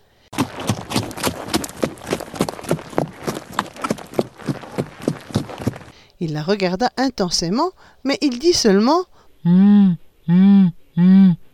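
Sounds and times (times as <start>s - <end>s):
hooves trotting toward another animal: 0.3s - 6.0s
speech: 6.2s - 11.4s.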